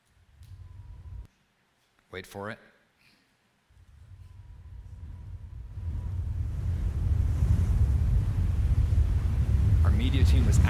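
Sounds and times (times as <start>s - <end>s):
recording of roaring wind: 0.3s - 1.3s, 3.8s - 10.6s
speech: 2.1s - 2.8s, 10.1s - 10.6s.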